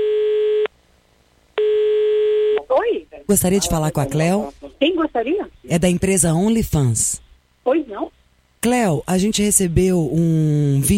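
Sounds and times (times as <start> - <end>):
telephone ringing tone as a call is placed: 0.0 - 0.7, 1.6 - 2.7
speech: 3.3 - 10.9.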